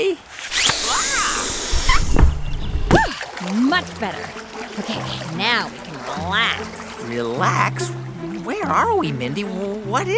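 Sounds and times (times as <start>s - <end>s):
inflatable life raft inflating automatically: 0.3s - 2.5s
low rumbling thumps: 1.5s - 3.1s
speech: 3.8s - 10.1s.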